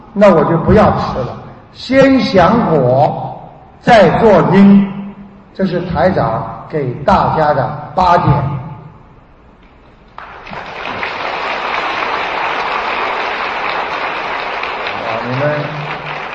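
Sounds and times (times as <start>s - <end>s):
speech: 0.2s - 3.2s, 3.8s - 4.9s, 5.6s - 8.5s
audience applause from a large crowd: 10.2s - 16.3s.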